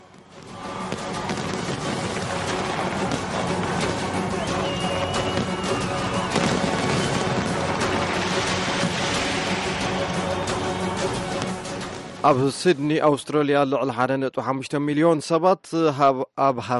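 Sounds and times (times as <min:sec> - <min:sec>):
fireworks at a New Year celebration in Sydney, Australia: 0:00.0 - 0:12.2
speech: 0:12.2 - 0:16.7.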